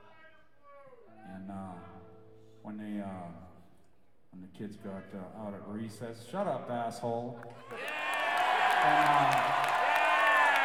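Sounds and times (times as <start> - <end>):
speech: 2.7 - 3.5, 4.3 - 7.9, 8.8 - 9.8
crowd cheering and whooping: 7.6 - 10.6.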